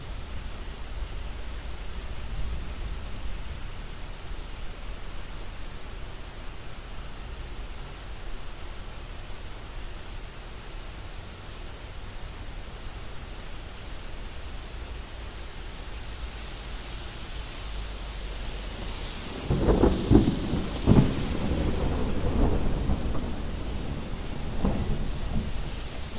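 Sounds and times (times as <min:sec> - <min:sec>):
rain on an urban industrial estate: 0:00.0 - 0:26.1
thunder over an urban industrial estate: 0:18.6 - 0:26.1.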